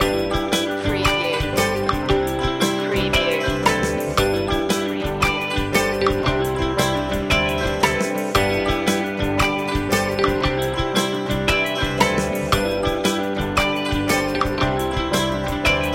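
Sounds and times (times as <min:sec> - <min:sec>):
folk music loop: 0:00.0 - 0:15.9.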